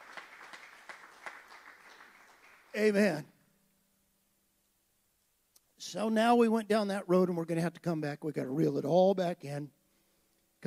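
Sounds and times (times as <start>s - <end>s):
crowd clapping: 0.0s - 3.2s
speech: 2.8s - 3.3s, 5.9s - 9.8s.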